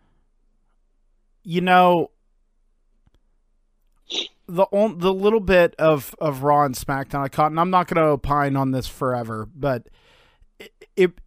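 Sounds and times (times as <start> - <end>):
speech: 1.5 - 2.2, 4.1 - 10.0, 10.6 - 11.2
sneeze: 4.1 - 4.4.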